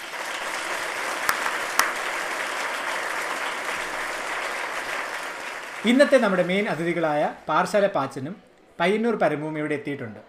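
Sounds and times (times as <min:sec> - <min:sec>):
audience clapping at an anniversary gathering: 0:00.0 - 0:07.2
sharp single claps: 0:01.2 - 0:02.1
speech: 0:05.8 - 0:10.2.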